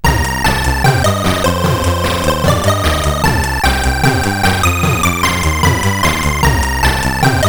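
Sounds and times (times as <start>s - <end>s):
SID CSG8580R5 chip music: 0.0s - 7.4s.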